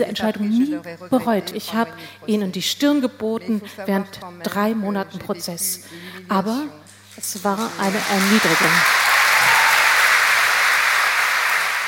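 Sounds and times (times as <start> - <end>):
speech: 0.0 - 9.0
audience applause: 7.6 - 11.8.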